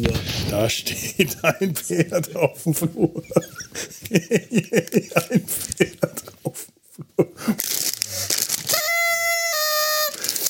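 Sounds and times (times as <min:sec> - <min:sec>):
speech: 0:00.0 - 0:06.6
laughter: 0:00.7 - 0:07.7
papery crinkling: 0:04.6 - 0:06.3, 0:07.4 - 0:10.4
party blower horn honking: 0:08.6 - 0:10.4.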